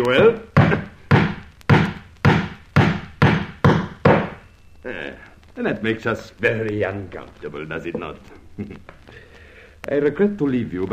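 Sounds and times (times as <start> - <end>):
speech: 0.0 - 0.8, 5.6 - 9.2, 9.8 - 10.9
hammer blows as an amateur carpenter drives nails: 0.2 - 4.4.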